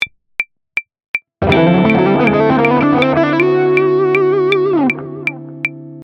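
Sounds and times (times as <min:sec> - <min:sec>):
musical lick: 0:01.4 - 0:05.8.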